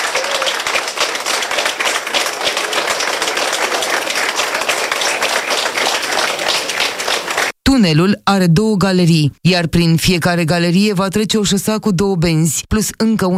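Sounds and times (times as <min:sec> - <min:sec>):
workers and authorities applauding underground in a motorway tunnel: 0:00.0 - 0:07.6
speech: 0:07.8 - 0:13.3.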